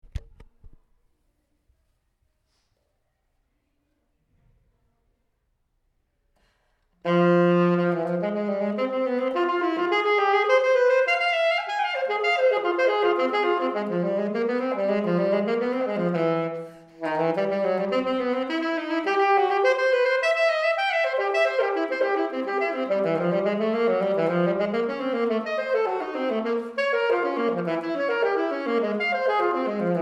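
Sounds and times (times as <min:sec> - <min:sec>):
alto saxophone: 0:07.0 - 0:30.0.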